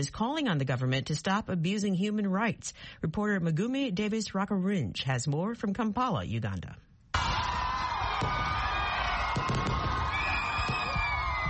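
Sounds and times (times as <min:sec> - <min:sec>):
speech: 0:00.0 - 0:06.9, 0:08.2 - 0:08.7
crowd cheering and whooping at new year: 0:07.2 - 0:11.4
firework bangs and crackles at new year: 0:07.2 - 0:11.4.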